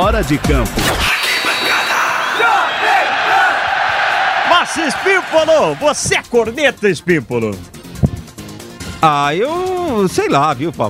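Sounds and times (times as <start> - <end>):
speech: 0.0 - 1.2, 4.7 - 7.8, 9.0 - 10.8
sports radio show jingle: 0.0 - 7.4.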